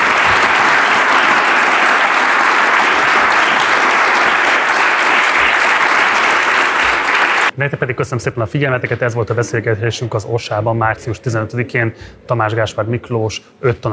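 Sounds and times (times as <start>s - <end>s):
audience applause: 0.0s - 7.5s
speech: 7.6s - 13.9s.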